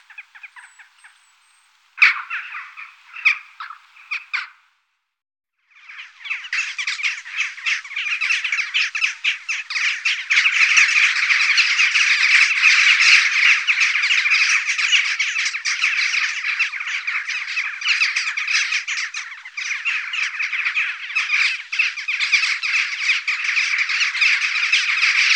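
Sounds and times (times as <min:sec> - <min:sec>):
western jackdaw chattering and calling: 0:00.0 - 0:04.6, 0:05.9 - 0:25.3.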